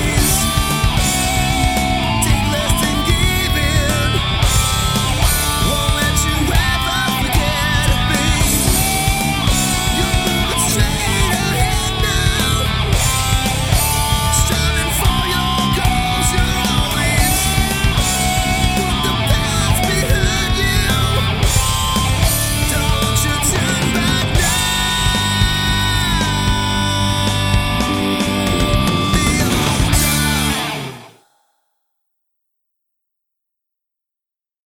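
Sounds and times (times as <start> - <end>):
electric harmony karaoke music: 0.0 - 31.2.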